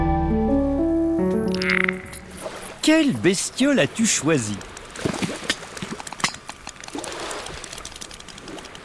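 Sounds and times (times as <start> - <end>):
murky rumbling water background: 0.2 - 8.8
speech: 2.9 - 4.7
sperm whale clicks underwater: 4.0 - 8.8.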